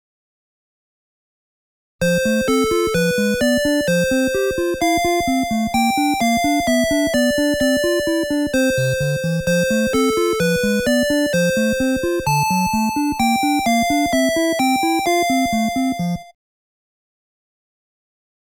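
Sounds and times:
game opening, main theme and stage clear music: 0:02.0 - 0:16.3.

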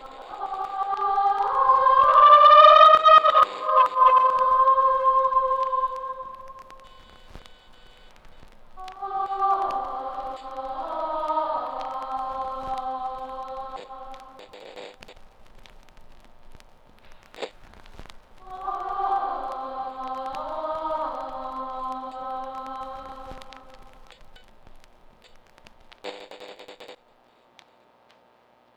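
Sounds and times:
choir singing: 0:00.0 - 0:07.0, 0:08.8 - 0:14.4, 0:18.4 - 0:24.1.

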